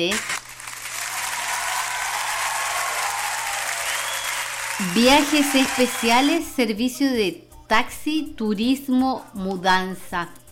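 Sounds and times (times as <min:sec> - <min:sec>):
speech: 0:00.0 - 0:00.3, 0:04.8 - 0:10.4
applause: 0:00.0 - 0:06.3.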